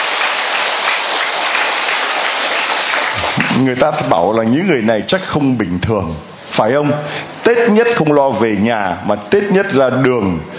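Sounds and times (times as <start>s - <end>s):
large audience applauding: 0.0s - 4.0s
speech: 3.6s - 10.5s.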